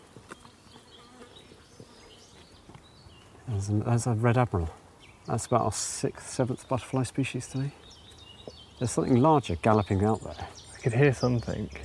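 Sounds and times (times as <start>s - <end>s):
hoverflies buzzing whine in a marsh: 0.0s - 2.6s
speech: 3.5s - 7.9s, 8.8s - 11.8s.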